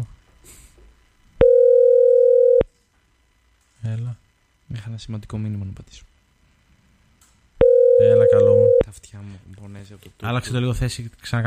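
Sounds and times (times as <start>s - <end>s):
telephone tone after a call line drops: 1.4s - 2.6s, 7.6s - 8.8s
speech: 4.7s - 6.1s, 8.0s - 11.4s.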